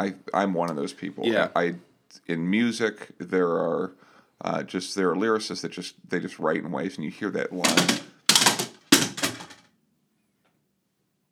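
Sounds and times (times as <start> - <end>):
speech: 0.0 - 8.1
two photos falling from bookshelves in an office: 7.6 - 9.6.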